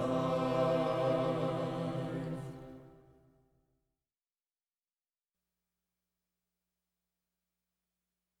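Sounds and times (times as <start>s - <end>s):
music: 0.0s - 3.8s.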